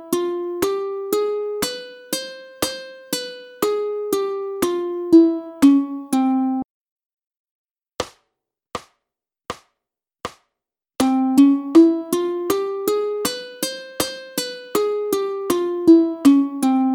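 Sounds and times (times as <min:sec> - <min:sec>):
ukulele playing gypsy major scales: 0:00.0 - 0:06.6, 0:11.0 - 0:16.9.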